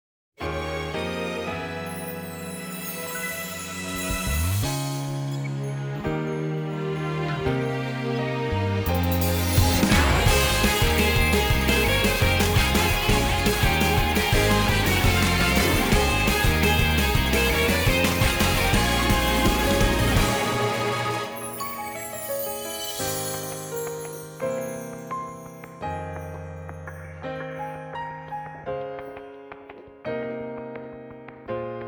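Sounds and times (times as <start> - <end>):
instrumental music: 0.4 - 31.8.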